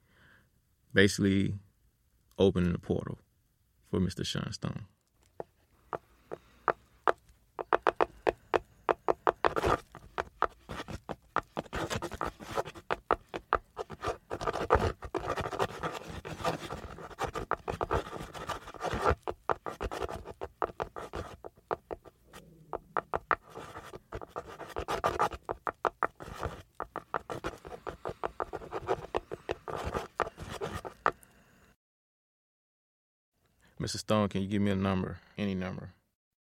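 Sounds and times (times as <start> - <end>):
speech: 0.9 - 1.6, 2.4 - 3.2, 3.9 - 5.0, 34.1 - 36.0
feather tapping on wood: 5.4 - 22.2, 22.8 - 31.2.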